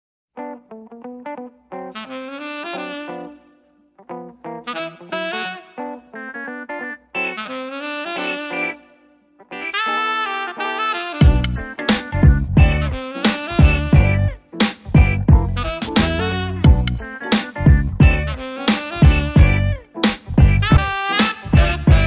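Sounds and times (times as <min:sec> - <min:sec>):
beat: 0:11.2 - 0:22.0.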